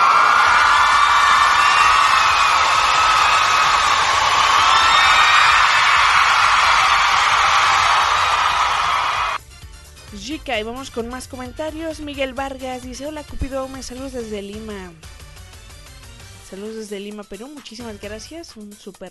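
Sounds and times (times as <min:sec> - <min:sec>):
large crowd cheering and applauding an ovation: 0:00.0 - 0:09.4
speech: 0:10.5 - 0:15.1, 0:16.5 - 0:19.0.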